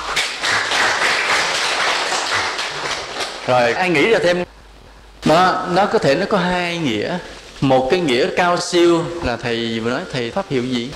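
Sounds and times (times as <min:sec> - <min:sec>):
class applauding: 0:00.0 - 0:03.7
speech: 0:03.5 - 0:04.6, 0:05.2 - 0:10.9.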